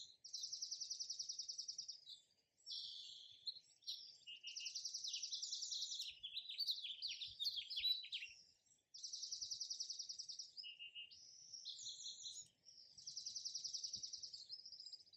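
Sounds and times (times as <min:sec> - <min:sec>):
birds chirping: 0:00.0 - 0:15.1.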